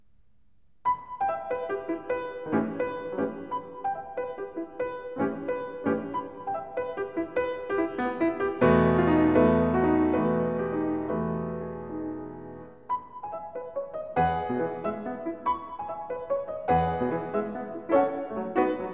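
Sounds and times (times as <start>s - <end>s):
three-quarter blues on piano: 0.9s - 18.9s.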